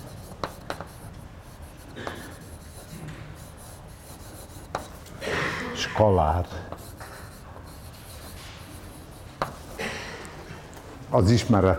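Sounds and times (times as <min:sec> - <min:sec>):
writing on a board during a lecture: 0:00.0 - 0:05.2, 0:06.2 - 0:09.9
speech: 0:06.0 - 0:06.9, 0:11.1 - 0:11.7.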